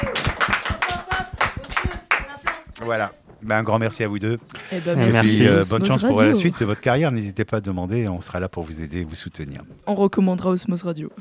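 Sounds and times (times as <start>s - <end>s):
applause: 0.0s - 3.0s
speech: 2.8s - 11.2s.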